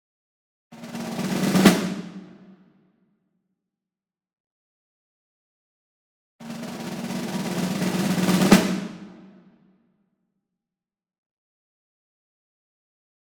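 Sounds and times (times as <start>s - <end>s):
Ludwig Black Beauty snare drum medium roll: 0.8s - 2.6s, 6.4s - 9.5s.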